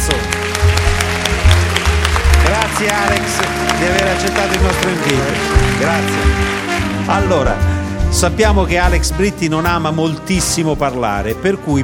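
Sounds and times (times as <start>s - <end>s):
audience applause for a guest: 0.0s - 7.6s
speech: 2.8s - 11.8s.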